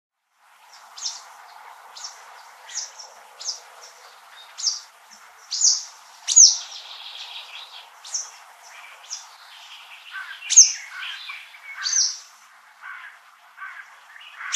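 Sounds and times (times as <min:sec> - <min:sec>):
bird chirping: 0:00.7 - 0:14.5.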